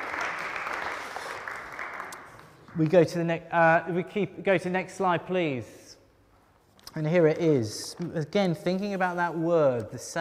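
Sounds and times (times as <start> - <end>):
audience applause: 0.0 - 2.6
speech: 2.8 - 5.8, 7.0 - 10.1.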